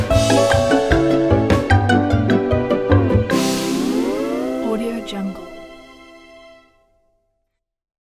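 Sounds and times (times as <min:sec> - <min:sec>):
orchestra: 0:00.0 - 0:05.6.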